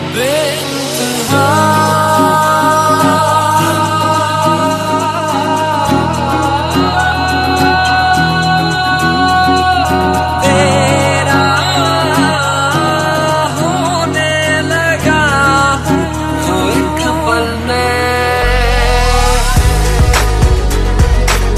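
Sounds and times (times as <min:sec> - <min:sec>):
remixed songs: 0:00.0 - 0:21.5.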